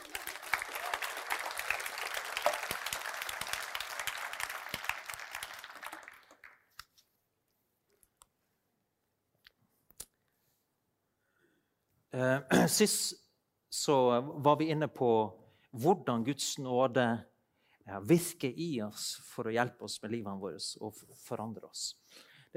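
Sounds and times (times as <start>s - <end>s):
audience applauding: 0.0s - 6.8s
speech: 12.2s - 13.2s, 13.8s - 17.3s, 17.9s - 22.5s.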